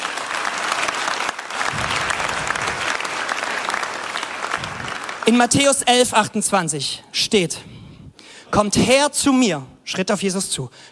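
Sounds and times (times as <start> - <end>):
audience clapping steadily: 0.0 - 5.5
speech: 5.3 - 7.7, 8.5 - 10.8.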